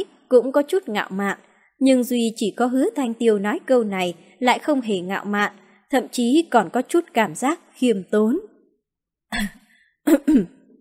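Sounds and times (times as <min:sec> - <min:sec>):
speech: 0:00.0 - 0:08.5, 0:09.3 - 0:10.6
person giving a dry cough: 0:09.4 - 0:10.6.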